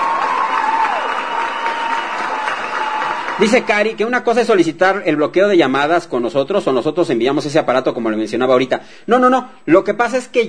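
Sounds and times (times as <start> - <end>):
applause: 0.0 - 4.0
speech: 3.4 - 10.4.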